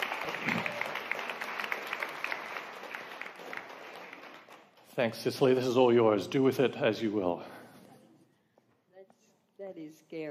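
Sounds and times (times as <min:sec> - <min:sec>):
audience applauding at a church service: 0:00.0 - 0:05.7
speech: 0:05.0 - 0:07.5.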